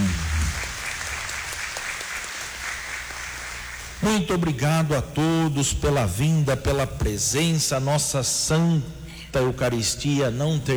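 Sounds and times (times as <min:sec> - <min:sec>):
audience applause: 0:00.0 - 0:03.9
speech: 0:04.0 - 0:10.7.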